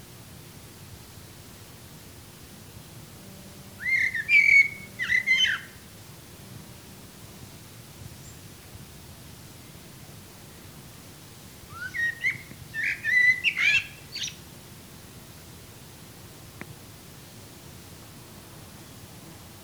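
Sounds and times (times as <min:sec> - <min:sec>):
Eurasian blackbird fluty whistled song: 0:03.8 - 0:05.8, 0:11.7 - 0:14.4.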